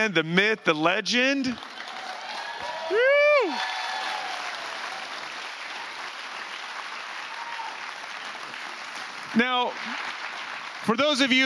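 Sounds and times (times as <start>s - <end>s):
speech: 0.0s - 1.8s, 2.9s - 3.8s, 9.4s - 10.2s, 10.8s - 11.4s
sizable audience applauding: 1.2s - 11.4s
faint whoops of cheering: 1.8s - 5.3s, 7.2s - 8.0s.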